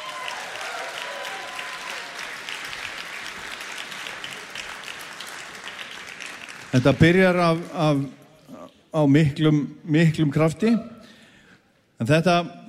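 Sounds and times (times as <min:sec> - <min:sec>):
audience applause for a band: 0:00.0 - 0:07.7
speech: 0:06.8 - 0:08.2, 0:08.9 - 0:10.9, 0:12.0 - 0:12.6.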